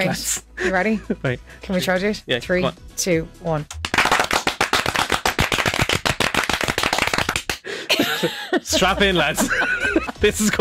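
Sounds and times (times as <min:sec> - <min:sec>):
speech: 0:00.0 - 0:03.9, 0:07.9 - 0:10.5
layered hand clapping like studio applause: 0:03.7 - 0:07.6
laughter: 0:07.7 - 0:10.5.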